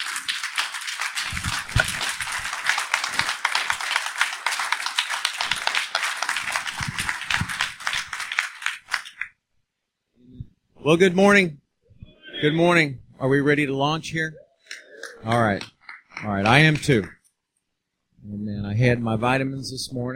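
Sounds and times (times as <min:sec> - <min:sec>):
audience applause: 0:00.0 - 0:09.3, 0:14.7 - 0:17.1
speech: 0:10.9 - 0:11.6, 0:12.4 - 0:14.4, 0:15.2 - 0:17.2, 0:18.2 - 0:20.1.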